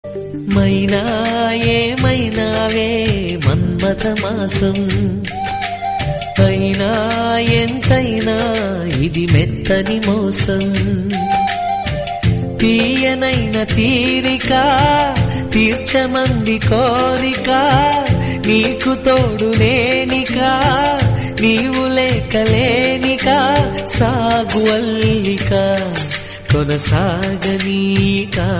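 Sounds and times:
Telugu song: 0.0 - 28.5.

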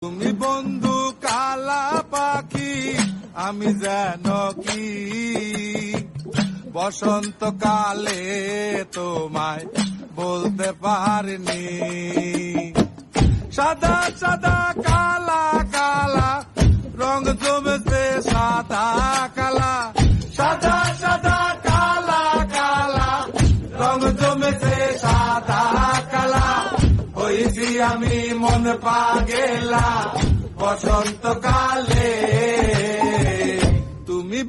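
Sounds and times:
Bangla song: 0.3 - 34.4.

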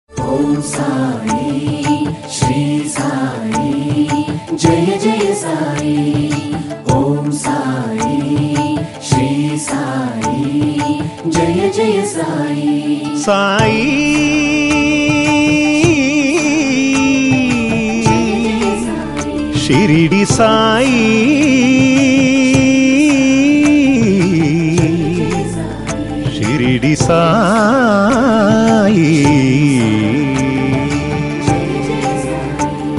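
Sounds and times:
devotional music: 0.1 - 32.9.

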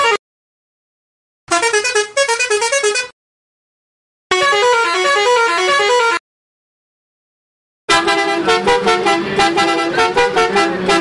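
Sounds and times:
bus horn: 0.0 - 0.2, 1.5 - 3.2, 4.3 - 6.2, 7.9 - 10.9.

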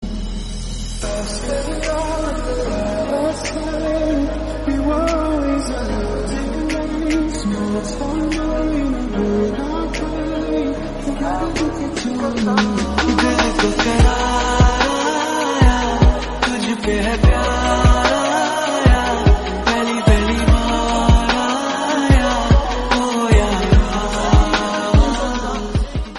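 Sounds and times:
sad Hindi music: 0.0 - 26.1.

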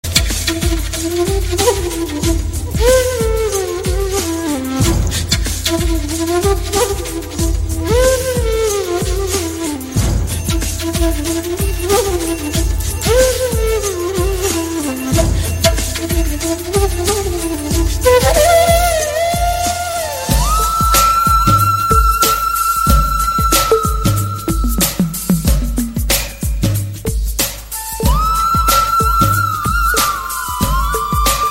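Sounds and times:
instrumental song: 0.0 - 31.4.

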